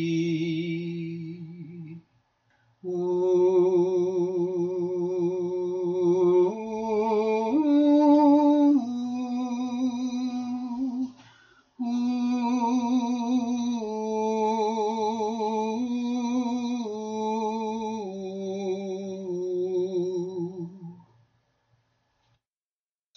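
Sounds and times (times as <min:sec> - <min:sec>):
soprano singing: 0:02.8 - 0:11.2, 0:11.8 - 0:21.0.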